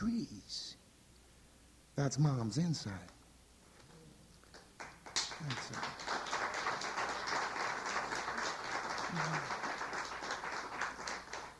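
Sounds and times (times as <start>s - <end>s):
speech: 2.0s - 3.2s
audience applause: 4.5s - 11.5s.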